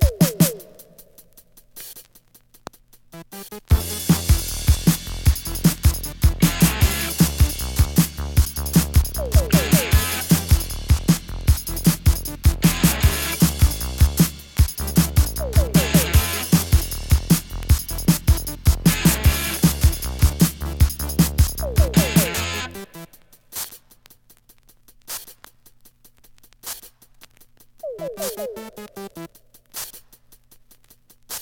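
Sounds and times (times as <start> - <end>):
punk rock rap instrumental mix: 3.2 - 23.0.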